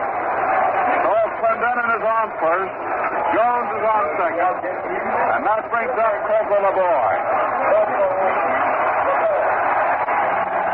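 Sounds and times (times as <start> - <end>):
ballpark crowd cheering for a batter: 0.0 - 10.7
speech: 2.2 - 8.5.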